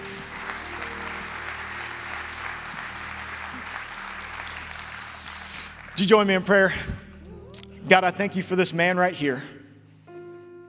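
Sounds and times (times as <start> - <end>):
church audience applauding a pastor welcomed on stage: 0.0 - 6.7
speech: 6.0 - 7.0, 7.9 - 9.6.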